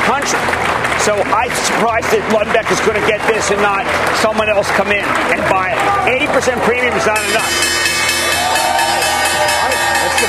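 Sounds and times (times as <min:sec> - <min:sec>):
speech: 0:01.0 - 0:07.9
stock exchange opening bell ringing at the Big Board: 0:07.2 - 0:10.2.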